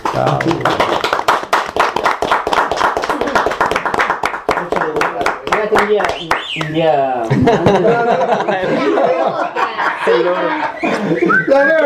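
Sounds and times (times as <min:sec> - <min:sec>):
small group applauding the cooks after a lunch of pork: 0:00.0 - 0:06.9
speech: 0:00.2 - 0:01.0, 0:05.8 - 0:11.8
laughter: 0:07.2 - 0:11.8.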